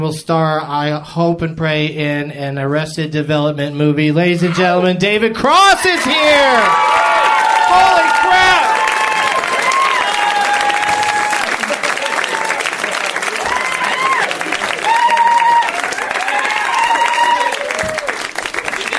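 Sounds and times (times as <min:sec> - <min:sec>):
speech: 0:00.0 - 0:07.1, 0:07.7 - 0:08.6
audience clapping: 0:06.1 - 0:18.9.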